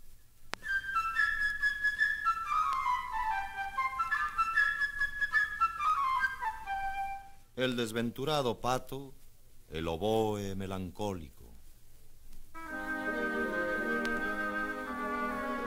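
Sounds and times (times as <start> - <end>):
light playful flute melody: 0.6 - 7.5, 12.6 - 15.6
speech: 7.6 - 11.4.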